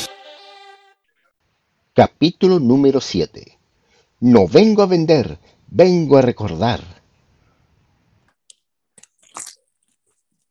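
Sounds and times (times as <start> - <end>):
speech: 2.0 - 3.6, 4.2 - 7.0
person chewing food: 8.5 - 10.2.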